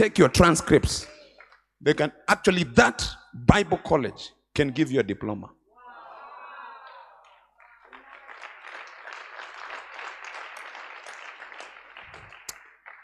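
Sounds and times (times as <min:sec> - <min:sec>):
speech: 0:00.0 - 0:01.1, 0:01.8 - 0:05.6
audience clapping at a church fire conference: 0:01.1 - 0:01.7, 0:06.8 - 0:13.0.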